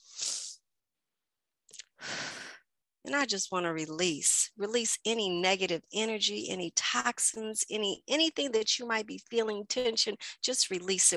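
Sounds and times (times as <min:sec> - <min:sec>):
deep breath: 0:02.0 - 0:02.6
speech: 0:03.0 - 0:11.1.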